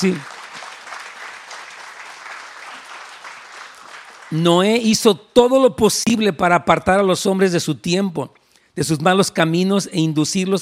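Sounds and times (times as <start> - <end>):
speech: 0.0 - 0.3, 4.3 - 10.6
audience applauding: 0.0 - 4.8.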